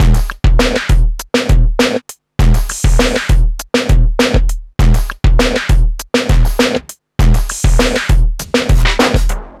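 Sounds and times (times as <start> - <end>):
distorted beat at 100 bpm: 0.0 - 9.5.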